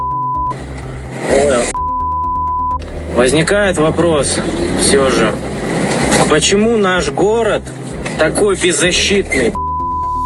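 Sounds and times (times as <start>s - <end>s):
plain high tone: 0.0s - 5.6s, 9.5s - 10.2s
car road and engine drone driving through Novorossiysk: 0.0s - 10.2s
louder rush: 0.5s - 1.8s, 2.7s - 9.2s
speech: 3.2s - 5.6s, 6.3s - 9.6s.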